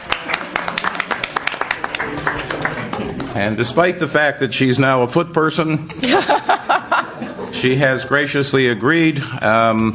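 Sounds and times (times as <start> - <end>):
audience clapping: 0.0 - 3.4
speech: 3.4 - 6.8, 7.6 - 9.9
laughter: 5.9 - 7.8.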